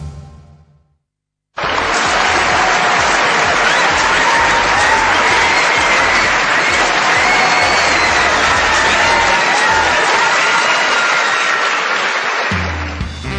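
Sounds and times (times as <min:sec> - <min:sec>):
whistles and cheers: 0:01.6 - 0:12.6
large crowd applause: 0:01.6 - 0:13.3.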